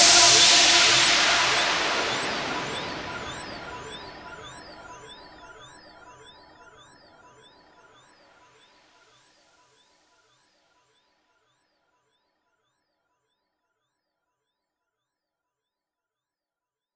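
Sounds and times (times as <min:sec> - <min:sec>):
cosmic noise: 0:00.0 - 0:05.4.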